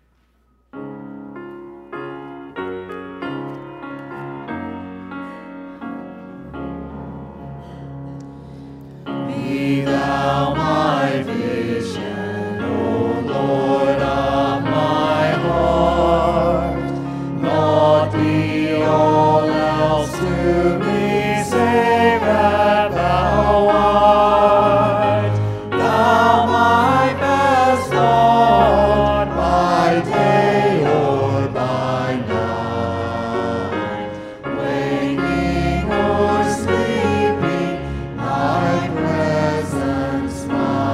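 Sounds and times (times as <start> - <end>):
instrumental accompaniment: 0.4 - 40.9
audience singing a hymn: 9.0 - 40.9.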